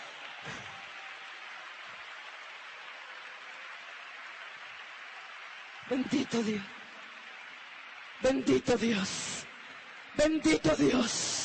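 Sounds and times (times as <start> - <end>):
applause: 0.0 - 11.4
speech: 5.9 - 6.8, 8.2 - 9.3, 10.2 - 11.3.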